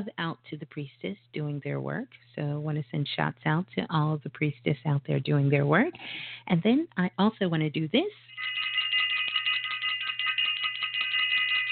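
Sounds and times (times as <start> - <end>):
speech: 0.0 - 8.7
bell being rung: 8.3 - 11.7.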